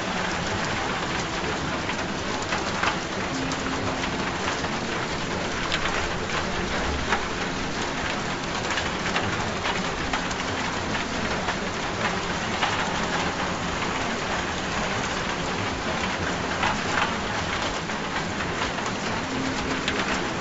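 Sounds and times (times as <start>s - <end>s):
rain: 0.0s - 20.3s.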